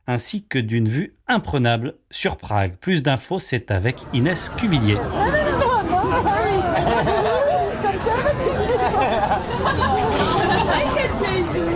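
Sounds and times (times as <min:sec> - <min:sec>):
speech: 0:00.1 - 0:05.4, 0:06.1 - 0:07.3
crowd chattering in an outdoor beer garden: 0:03.3 - 0:11.7
laughter: 0:06.7 - 0:11.1.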